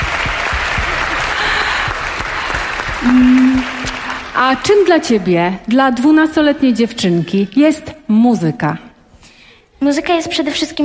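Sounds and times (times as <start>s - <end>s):
crowd applauding: 0.0s - 5.2s
speech: 3.0s - 3.5s, 4.4s - 8.9s, 9.8s - 10.8s.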